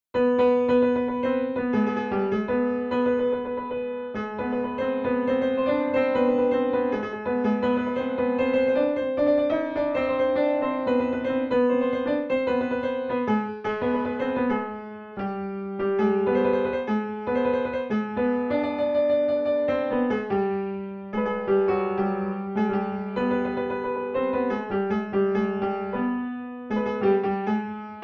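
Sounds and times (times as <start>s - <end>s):
piano piece: 0.2s - 28.0s.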